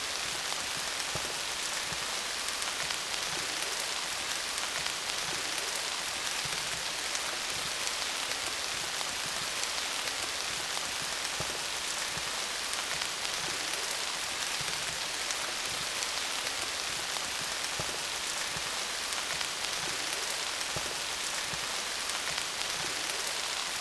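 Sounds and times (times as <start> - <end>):
rain: 0.0 - 23.7.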